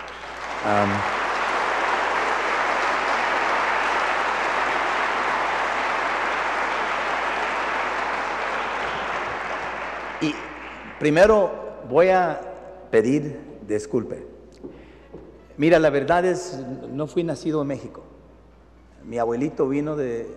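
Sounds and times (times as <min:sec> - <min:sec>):
audience applause: 0:00.0 - 0:11.3
speech: 0:00.6 - 0:01.2, 0:10.2 - 0:10.4, 0:11.0 - 0:14.3, 0:15.6 - 0:18.1, 0:19.0 - 0:20.3.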